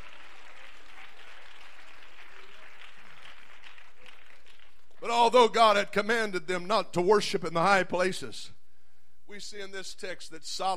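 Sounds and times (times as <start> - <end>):
audience clapping hands: 0.0 - 5.1
speech: 5.1 - 8.6, 9.3 - 10.7.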